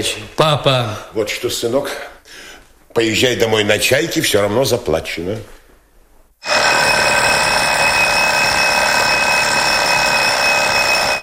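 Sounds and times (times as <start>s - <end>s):
speech: 0.0s - 5.6s
alarm clock ringing: 6.4s - 11.2s.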